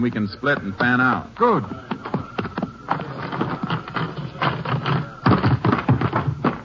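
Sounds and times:
speech: 0:00.0 - 0:02.2
horse hoofbeats: 0:00.0 - 0:06.6.

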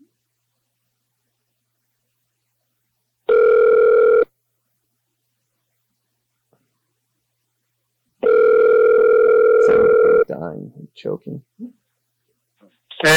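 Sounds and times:
telephone dial tone after hang-up: 0:03.3 - 0:04.3, 0:08.2 - 0:10.3
speech: 0:10.6 - 0:11.8, 0:13.0 - 0:13.1.

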